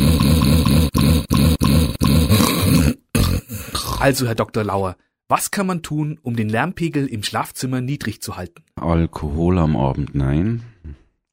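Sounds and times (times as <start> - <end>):
loud snoring: 0.0 - 4.1
speech: 4.0 - 11.0.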